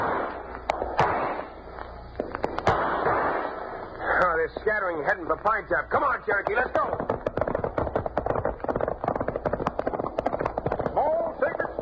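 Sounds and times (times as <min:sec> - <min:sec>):
gunshots in a western radio drama shootout: 0:00.0 - 0:01.6, 0:02.2 - 0:11.8
speech: 0:04.5 - 0:07.1.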